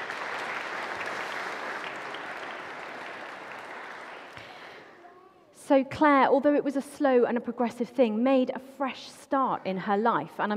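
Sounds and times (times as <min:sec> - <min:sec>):
crowd applauding: 0:00.0 - 0:04.9
speech: 0:05.7 - 0:10.5.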